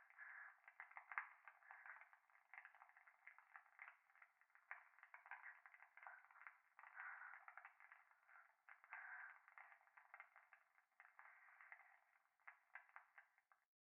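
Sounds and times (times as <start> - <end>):
breathing close to the right ear in a bath: 0.0 - 2.1, 5.3 - 10.3, 11.2 - 11.9
fireplace crackling: 0.0 - 13.7.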